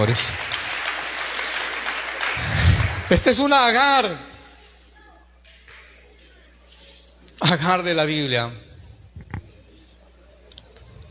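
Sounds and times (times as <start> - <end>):
speech: 0.0 - 0.6, 3.1 - 4.3, 7.4 - 8.7
audience applause: 0.0 - 3.7.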